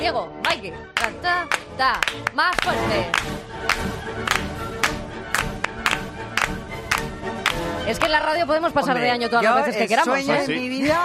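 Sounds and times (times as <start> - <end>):
speech: 0.1 - 4.5, 7.9 - 11.0
audience clapping in unison along to a march: 0.4 - 8.4.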